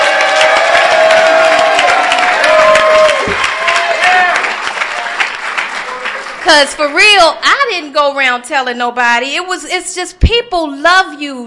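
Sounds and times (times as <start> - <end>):
audience applause: 0.0 - 7.1
speech: 6.5 - 11.4.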